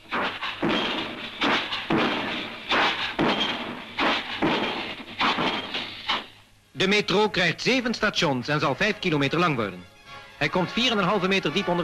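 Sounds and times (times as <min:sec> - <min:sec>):
pile driver driving steel sheet piling: 0:00.0 - 0:06.2
speech: 0:06.8 - 0:11.8.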